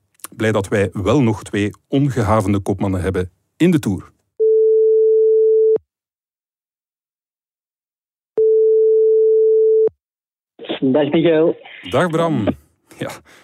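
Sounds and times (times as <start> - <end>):
speech: 0.4 - 4.1, 10.8 - 13.4
telephone ringback tone as a call is placed: 4.4 - 5.8, 8.4 - 9.9.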